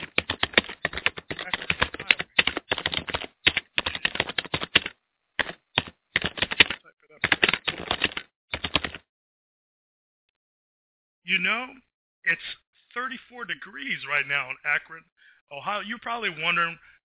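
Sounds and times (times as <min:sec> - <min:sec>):
rapid keystrokes typing a weather report: 0:00.0 - 0:09.0
speech: 0:11.4 - 0:17.0.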